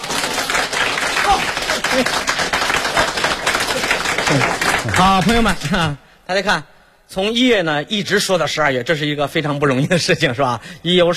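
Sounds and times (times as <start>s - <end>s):
audience applause: 0.0s - 5.8s
speech: 2.0s - 2.2s, 4.3s - 11.1s.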